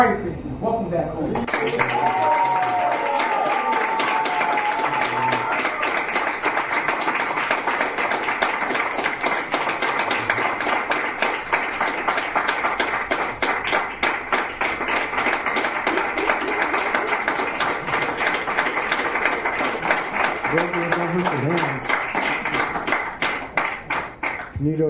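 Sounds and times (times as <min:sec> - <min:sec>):
speech: 0:00.0 - 0:02.1
rousing round of applause from audience: 0:01.4 - 0:24.6.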